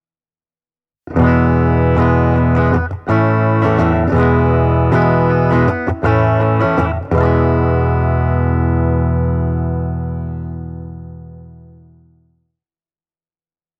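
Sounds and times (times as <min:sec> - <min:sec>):
LTD M 100FM electric guitar clean: 0:01.1 - 0:12.4.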